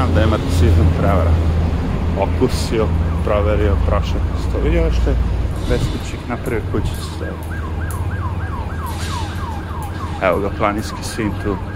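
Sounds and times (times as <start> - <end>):
speech: 0.0 - 1.6, 2.2 - 7.6, 10.2 - 11.7
siren wailing: 2.0 - 5.3, 6.0 - 11.7.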